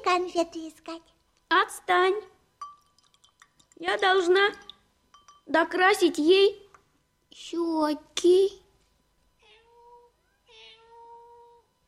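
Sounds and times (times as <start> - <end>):
speech: 0.0 - 2.4, 3.8 - 4.7, 5.5 - 6.6, 7.3 - 8.6
cat meowing to be let in: 9.4 - 11.6.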